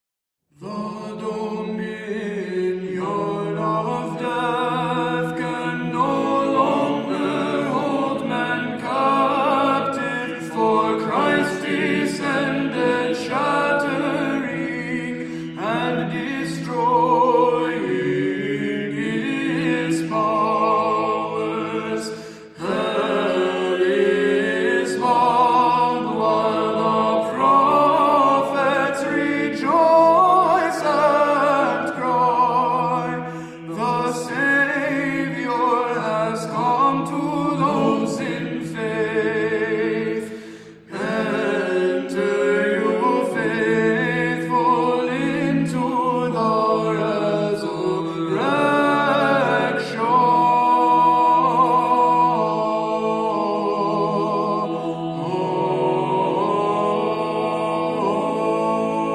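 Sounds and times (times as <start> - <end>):
Byzantine chant: 0.6 - 59.1.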